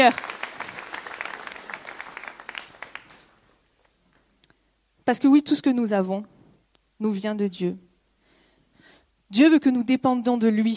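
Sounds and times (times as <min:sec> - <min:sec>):
speech: 0:00.0 - 0:00.4, 0:05.1 - 0:06.4, 0:07.0 - 0:07.9, 0:09.3 - 0:10.7
audience applause: 0:00.0 - 0:03.4.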